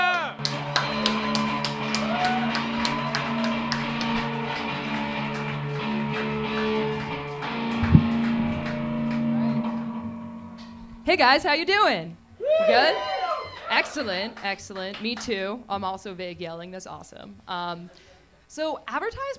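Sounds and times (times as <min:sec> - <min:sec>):
audience applause: 0:00.0 - 0:10.0, 0:12.4 - 0:15.0
speech: 0:11.1 - 0:13.1, 0:13.7 - 0:19.3.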